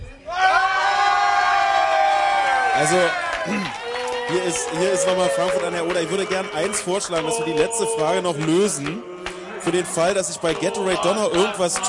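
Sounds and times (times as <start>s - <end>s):
pub crowd cheering and whooping: 0.3s - 6.0s
speech: 2.8s - 11.8s.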